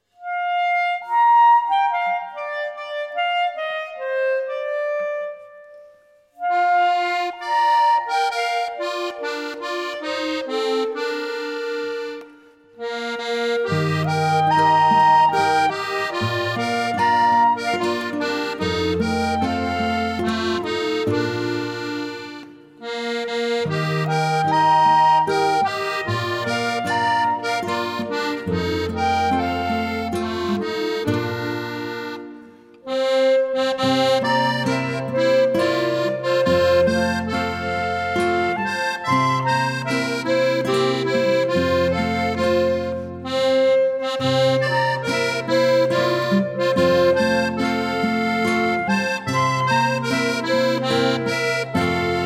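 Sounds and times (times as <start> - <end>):
clarinet melody: 0.0 - 52.2.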